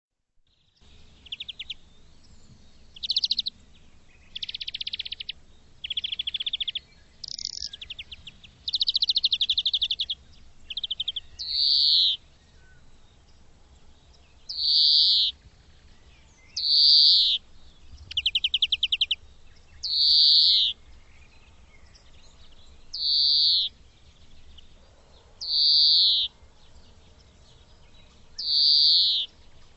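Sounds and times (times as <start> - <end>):
bird long high whistles: 3.0 - 3.5, 4.2 - 12.8, 14.5 - 15.4, 16.5 - 17.4, 18.1 - 19.2, 19.8 - 20.8, 22.9 - 23.8, 25.4 - 26.4, 28.3 - 29.3.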